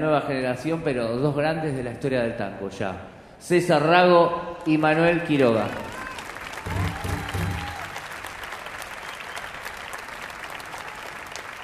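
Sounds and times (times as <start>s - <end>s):
speech: 0.0s - 6.0s
audience applause: 5.5s - 11.6s.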